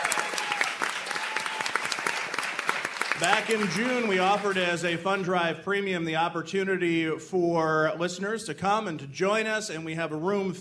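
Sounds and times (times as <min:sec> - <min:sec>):
live studio audience applauding at a roundtable panel at the Linda in Albany: 0:00.0 - 0:05.1
speech: 0:03.2 - 0:10.6.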